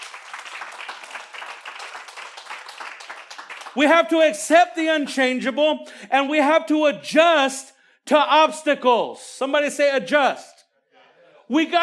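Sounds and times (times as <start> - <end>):
audience applause: 0.0 - 3.9
speech: 3.8 - 10.5, 11.5 - 11.8.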